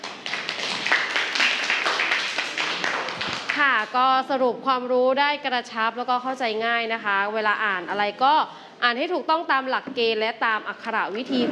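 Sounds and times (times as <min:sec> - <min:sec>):
students clapping in classroom: 0:00.0 - 0:03.6
speech: 0:03.8 - 0:11.5.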